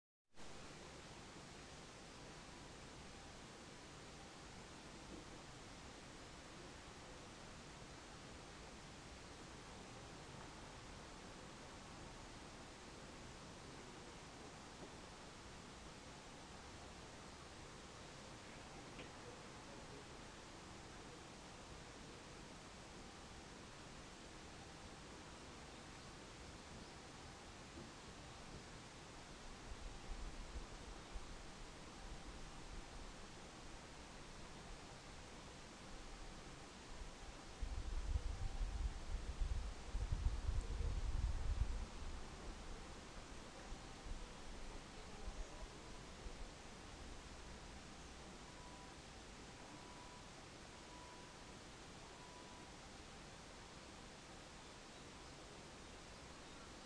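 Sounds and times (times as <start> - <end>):
noise: 0.3 - 56.8.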